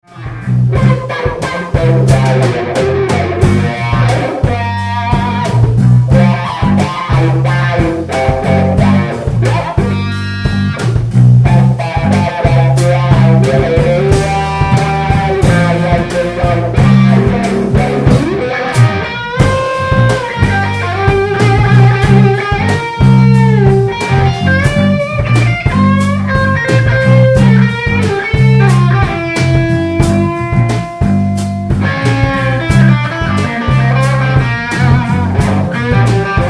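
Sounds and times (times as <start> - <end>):
boogie jam in G: 0.0 - 36.4.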